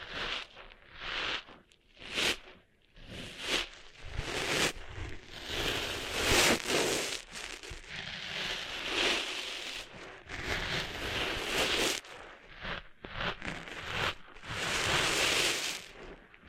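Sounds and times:
scratchy rustling as sand is cleaned out of an ear: 0.0s - 16.3s.

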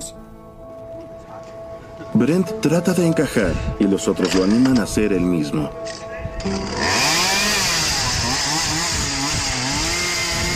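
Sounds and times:
speech: 2.2s - 6.8s
saw cutting through a sofa: 6.4s - 10.5s.

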